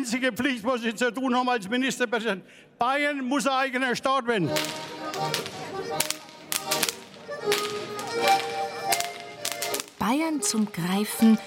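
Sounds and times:
speech: 0.0 - 6.2, 7.4 - 8.6, 10.0 - 11.4
traditional Bavarian whip cracking: 4.5 - 10.2
festive noise: 4.5 - 11.4.

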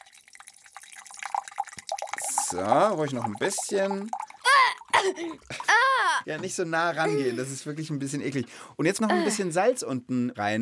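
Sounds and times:
vinegar essence poured into a glass: 0.0 - 5.7
speech: 2.5 - 4.2, 5.0 - 10.5.

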